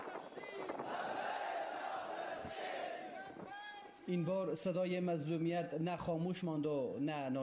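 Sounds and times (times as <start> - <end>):
protest crowd chanting slogans: 0.0 - 3.5
speech: 4.1 - 7.4.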